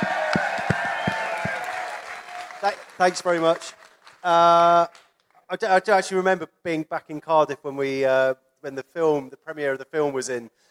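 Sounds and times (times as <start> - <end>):
audience applause: 0.0 - 4.9
speech: 2.6 - 10.6.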